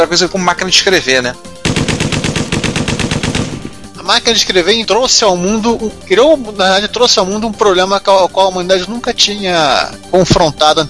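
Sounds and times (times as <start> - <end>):
speech: 0.0 - 1.6, 4.1 - 10.8
drum-fed submachine gun firing: 1.6 - 4.0.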